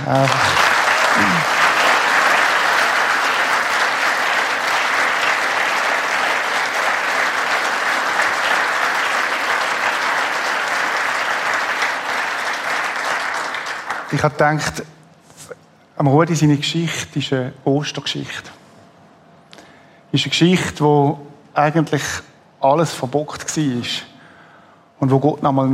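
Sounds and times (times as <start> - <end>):
speech: 0.0 - 0.5, 14.2 - 15.0, 16.0 - 18.6, 20.1 - 24.1, 25.0 - 25.7
applause: 0.0 - 14.8.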